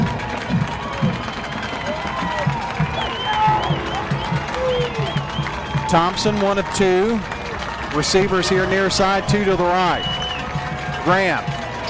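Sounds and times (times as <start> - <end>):
football crowd roaring: 0.0 - 11.8
rhythmic low thumps: 0.0 - 11.8
whistles: 0.8 - 7.6, 9.5 - 11.0
speech: 5.9 - 10.1, 11.0 - 11.8.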